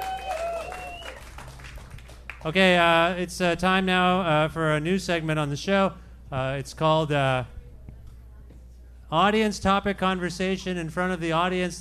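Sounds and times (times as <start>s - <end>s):
crowd applauding: 0.0s - 2.6s
thin sustained whistle-like tone: 0.1s - 1.2s
speech: 2.4s - 7.6s, 9.1s - 11.7s.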